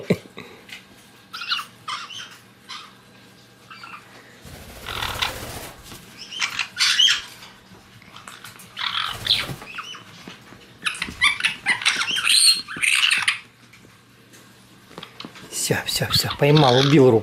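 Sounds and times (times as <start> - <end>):
white-bellied caique chick squawking and chattering: 1.3 - 3.0, 4.8 - 7.4, 8.8 - 10.1, 10.8 - 13.5
speech: 16.0 - 17.2.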